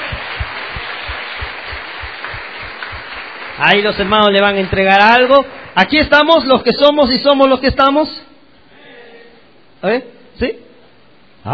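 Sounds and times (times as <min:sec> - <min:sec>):
soft low thumps: 0:00.0 - 0:03.2
congregation applauding at a Spanish-language church service: 0:00.0 - 0:06.1
speech: 0:03.6 - 0:08.2, 0:09.8 - 0:10.6.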